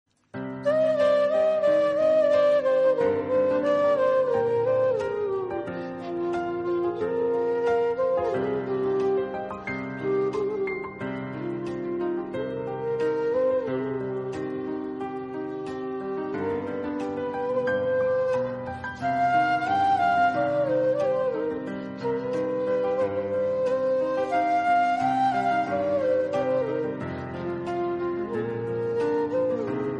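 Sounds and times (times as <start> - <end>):
flute: 0.4 - 29.9.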